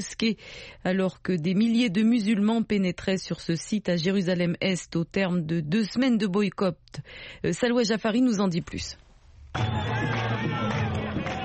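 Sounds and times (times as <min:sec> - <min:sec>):
speech: 0:00.0 - 0:10.1
jubilant Palestinian crowd roaring at the entrance of the Al-Aqsa esplanade: 0:09.5 - 0:11.4.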